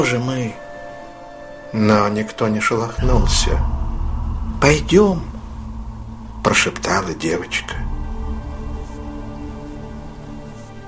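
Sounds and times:
speech: 0:00.0 - 0:00.6, 0:01.7 - 0:03.8, 0:04.6 - 0:05.3, 0:06.4 - 0:07.9
cold rain pouring during a storm: 0:03.0 - 0:10.8.

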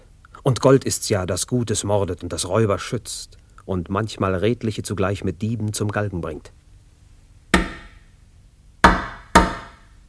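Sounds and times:
speech: 0:00.5 - 0:06.6
knocking on a door: 0:08.8 - 0:09.8.

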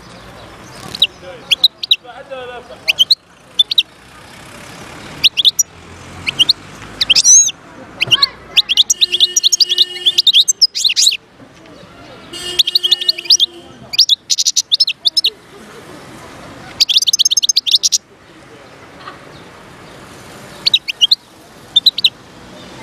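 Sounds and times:
wild European goldfinch singing: 0:00.0 - 0:11.2, 0:12.3 - 0:15.4, 0:16.7 - 0:18.0, 0:20.5 - 0:22.2.

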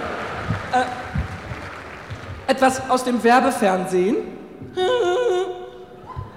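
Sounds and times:
audience applause: 0:00.0 - 0:02.9
speech: 0:00.7 - 0:01.0, 0:02.5 - 0:05.6.

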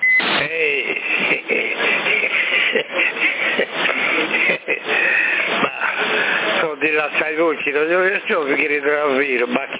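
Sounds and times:
radio transmission beep: 0:00.0 - 0:00.8
laughter: 0:00.4 - 0:06.7
speech: 0:00.5 - 0:01.1, 0:07.3 - 0:09.7.

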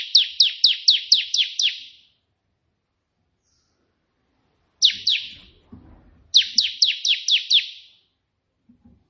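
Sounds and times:
prinia singing buzzy notes: 0:00.0 - 0:02.1, 0:04.8 - 0:05.6, 0:06.3 - 0:08.0.

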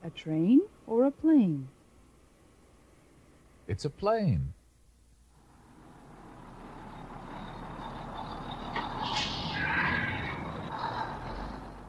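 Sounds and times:
speech: 0:00.1 - 0:01.8, 0:03.7 - 0:04.6
bus engine rumble: 0:05.4 - 0:11.8
bus air brakes hissing: 0:06.6 - 0:11.8.

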